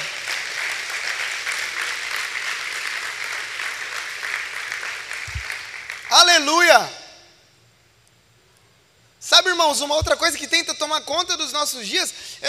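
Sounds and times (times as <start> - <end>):
large crowd applauding: 0.0 - 6.3
speech: 6.1 - 7.0, 9.5 - 12.4.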